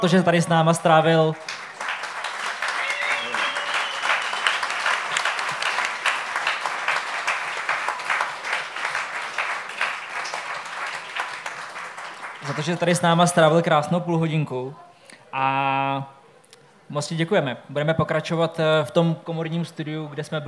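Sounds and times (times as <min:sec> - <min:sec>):
speech: 0:00.0 - 0:01.5, 0:12.6 - 0:16.2, 0:16.9 - 0:20.4
audience applause: 0:00.0 - 0:13.4.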